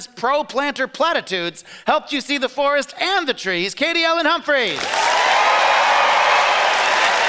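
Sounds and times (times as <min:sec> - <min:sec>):
speech: 0:00.0 - 0:05.1
audience applause: 0:04.8 - 0:07.2.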